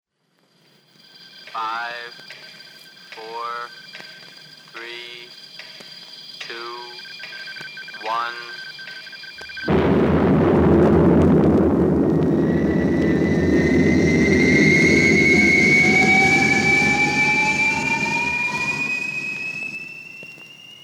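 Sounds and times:
speech: 0:01.5 - 0:02.5, 0:03.2 - 0:04.1, 0:04.7 - 0:05.4, 0:06.5 - 0:06.9, 0:08.0 - 0:08.6
spaceship rocket taking off: 0:09.6 - 0:20.8.

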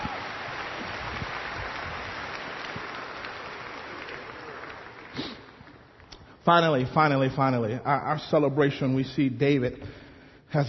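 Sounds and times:
crowd applause: 0:00.0 - 0:06.2
speech: 0:06.4 - 0:10.6.

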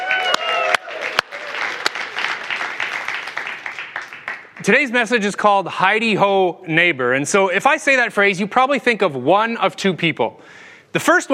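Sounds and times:
audience cheering and applause: 0:00.0 - 0:04.6
speech: 0:04.6 - 0:11.3.

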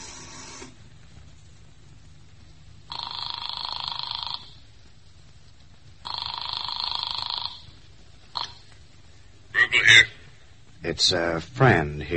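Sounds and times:
telephone bell ringing: 0:02.9 - 0:04.6, 0:06.1 - 0:07.7
speech: 0:10.9 - 0:12.1.

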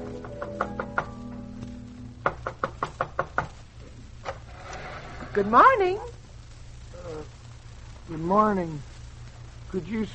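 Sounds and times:
knock at the back door: 0:02.2 - 0:03.6
speech: 0:05.4 - 0:06.1, 0:08.1 - 0:08.9, 0:09.7 - 0:10.1.

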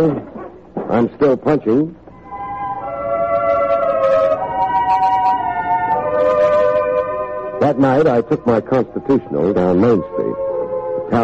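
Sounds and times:
speech: 0:00.0 - 0:00.3, 0:00.9 - 0:02.0, 0:07.7 - 0:10.5, 0:11.1 - 0:11.2
faint noise: 0:00.0 - 0:11.2
fire engine siren wailing: 0:02.2 - 0:11.2.

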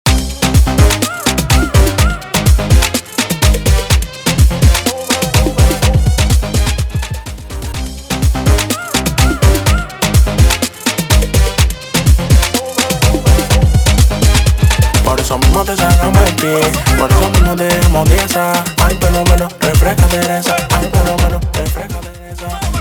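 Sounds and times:
music track at 125 bpm: 0:00.1 - 0:22.7.

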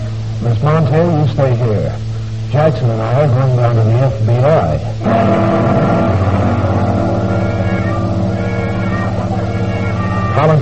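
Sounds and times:
speech: 0:00.4 - 0:06.4, 0:10.4 - 0:10.6
car driving off: 0:05.0 - 0:10.4.

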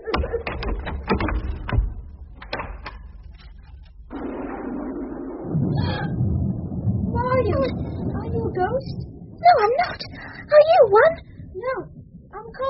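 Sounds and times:
door being opened: 0:00.0 - 0:03.8
steady noisy rush: 0:04.0 - 0:12.6.

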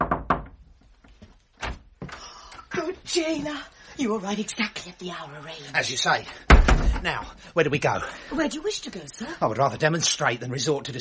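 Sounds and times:
knocking on a door in a period drama: 0:00.0 - 0:00.6, 0:06.5 - 0:07.2
speech: 0:03.1 - 0:10.9.

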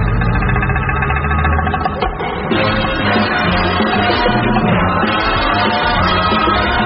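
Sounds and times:
vehicle engine approaching: 0:00.0 - 0:06.8.

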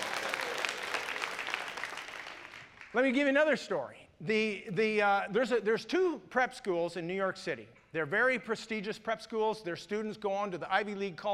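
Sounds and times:
audience clapping and cheering: 0:00.0 - 0:03.2
speech: 0:02.9 - 0:11.3.

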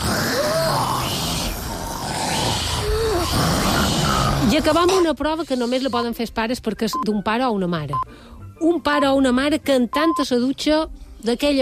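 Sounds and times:
family member snoring loudly: 0:00.0 - 0:05.0
speech: 0:04.6 - 0:11.6.

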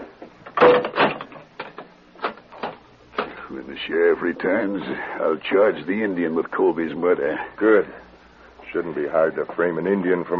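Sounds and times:
cell door closing and locking: 0:00.6 - 0:01.4
speech: 0:00.7 - 0:01.0, 0:03.8 - 0:08.0, 0:08.7 - 0:10.3.

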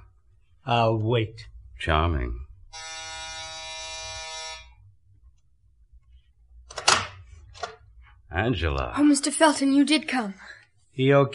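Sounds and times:
speech: 0:00.7 - 0:02.5, 0:08.3 - 0:11.3
apartment door buzzer: 0:02.7 - 0:04.8.

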